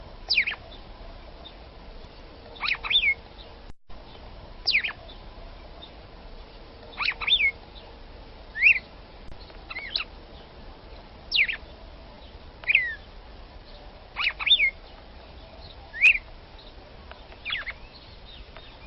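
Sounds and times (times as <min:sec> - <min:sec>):
red-cowled cardinal female singing short sweeping whistles: 0:00.3 - 0:00.7, 0:02.6 - 0:03.2, 0:04.6 - 0:05.2, 0:06.9 - 0:07.6, 0:08.5 - 0:08.9, 0:09.7 - 0:10.1, 0:11.3 - 0:11.6, 0:12.7 - 0:13.1, 0:14.2 - 0:14.8, 0:15.6 - 0:16.3, 0:17.4 - 0:18.8.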